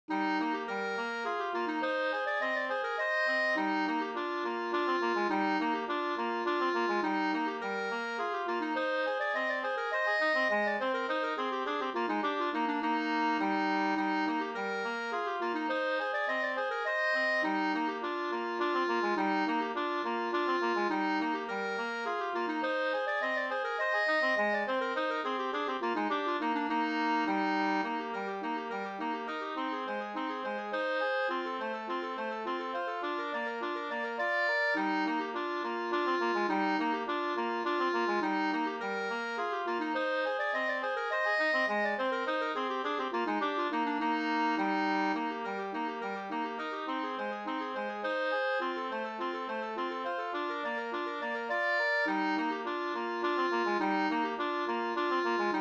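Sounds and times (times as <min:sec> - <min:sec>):
two-part slangpolska: 0:00.1 - 0:55.5.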